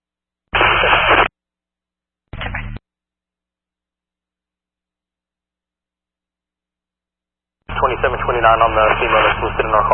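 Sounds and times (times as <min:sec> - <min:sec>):
radio static: 0:00.5 - 0:01.3, 0:07.7 - 0:09.9
speech: 0:07.9 - 0:09.9.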